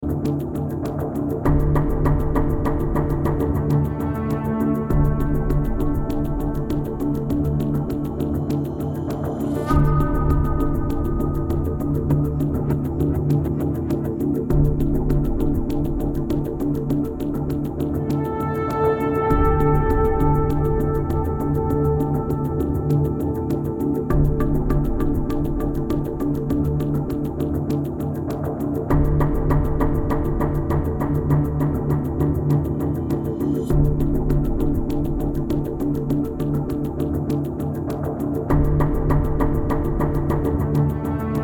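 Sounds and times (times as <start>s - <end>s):
reveal and exposition music: 0.0s - 41.4s.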